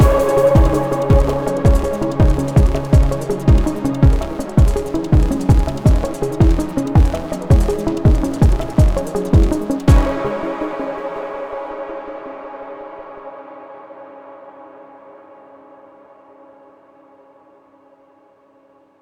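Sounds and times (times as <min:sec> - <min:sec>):
opening music: 0:00.0 - 0:12.5.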